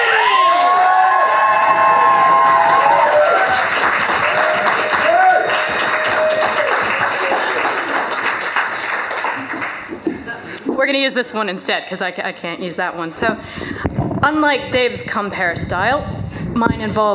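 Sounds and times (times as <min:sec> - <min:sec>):
cheers and whoops: 0:00.0 - 0:07.9
loud crowd applause: 0:00.0 - 0:10.4
speech: 0:11.0 - 0:17.1.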